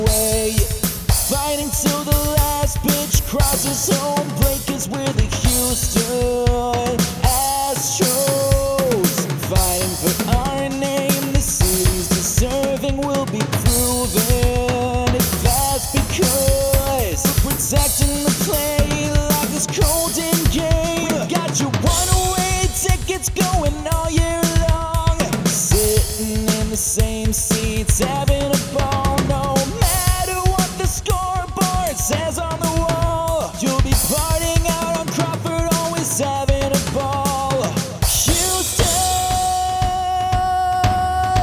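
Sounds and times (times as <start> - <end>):
rock lead vocals: 0.0 - 41.4.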